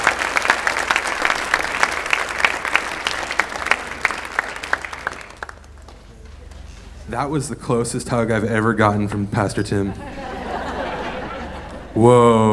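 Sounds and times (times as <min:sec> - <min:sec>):
church congregation applauding to welcome the next speaker: 0:00.0 - 0:06.9
speech: 0:07.1 - 0:10.2, 0:12.0 - 0:12.5
laughter: 0:09.7 - 0:12.5.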